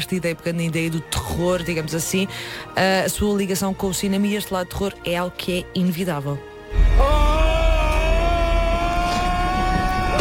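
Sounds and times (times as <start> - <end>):
speech: 0.0 - 7.2
high-pitched scream from a horror film: 6.7 - 10.1.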